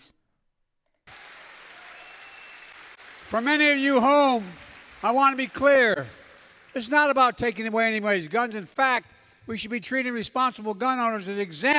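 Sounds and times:
crowd cheering and applauding: 0:01.0 - 0:07.2
speech: 0:03.3 - 0:06.2, 0:06.8 - 0:11.7.

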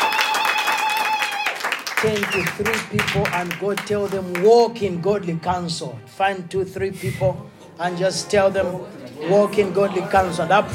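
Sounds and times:
audience applause: 0:00.0 - 0:04.5
speech: 0:02.0 - 0:10.7.

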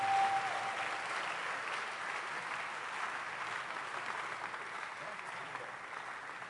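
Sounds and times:
audience clapping hands: 0:00.0 - 0:06.4.

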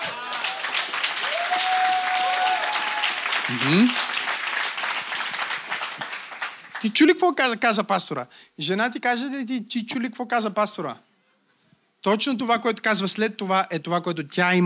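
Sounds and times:
audience applause: 0:00.0 - 0:07.0
speech: 0:03.5 - 0:04.0, 0:06.8 - 0:11.1, 0:12.0 - 0:14.6.

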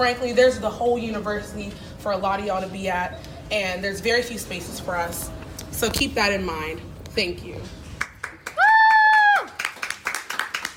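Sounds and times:
speech: 0:00.0 - 0:07.8
applause: 0:08.0 - 0:10.7.

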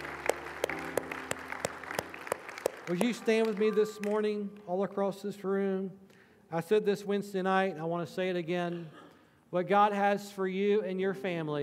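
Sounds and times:
scattered applause: 0:00.0 - 0:04.4
audience rhythmic clapping: 0:00.0 - 0:04.7
speech: 0:02.9 - 0:11.6.

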